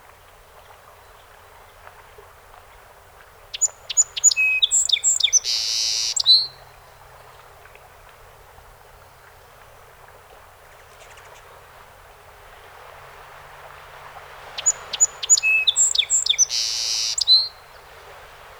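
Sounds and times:
song sparrow song: 3.5s - 7.4s, 14.3s - 18.3s.

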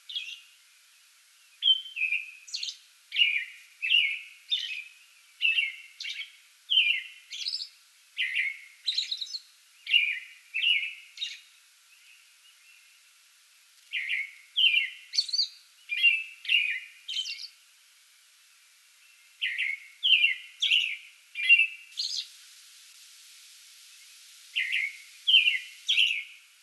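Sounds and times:
faint hiss: 0.0s - 26.6s
American robin whistled song: 0.1s - 0.5s, 1.5s - 12.9s, 13.9s - 17.6s, 19.0s - 22.3s, 23.9s - 26.4s.

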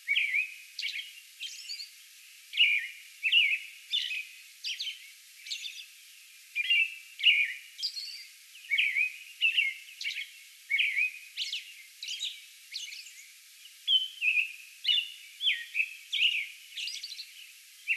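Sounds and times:
American robin warbled slurred phrases: 2.6s - 5.9s, 6.6s - 13.2s, 13.8s - 17.9s.

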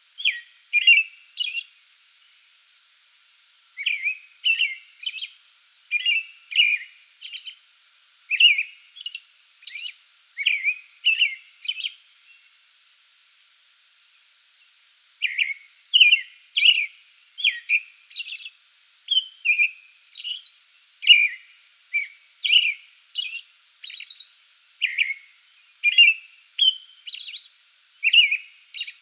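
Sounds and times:
American robin singing whistled phrases: 0.2s - 1.7s, 3.8s - 7.6s, 8.3s - 12.0s, 15.2s - 18.5s, 19.1s - 29.0s.

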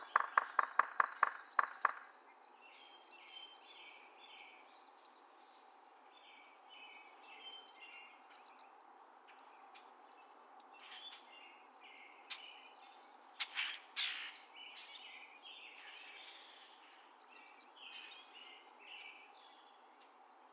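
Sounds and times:
Yellow-bellied Sapsucker drumming: 0.0s - 2.3s.

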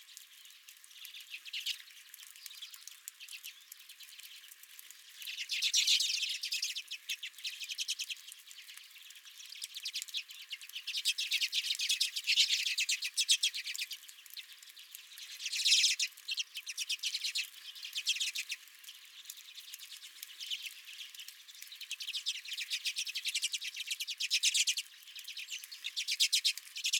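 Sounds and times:
redpolls chattering: 0.0s - 26.9s.

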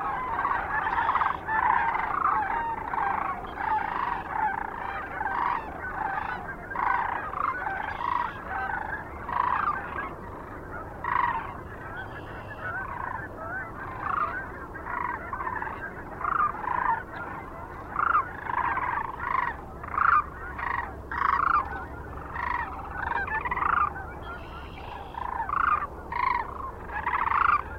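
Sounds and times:
Sandhill Cranes bugling together: 0.0s - 27.7s.

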